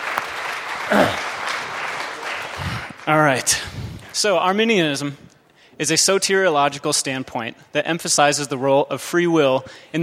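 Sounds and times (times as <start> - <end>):
audience applause: 0.0 - 3.0
speech: 0.9 - 1.2, 3.1 - 5.2, 5.8 - 10.0.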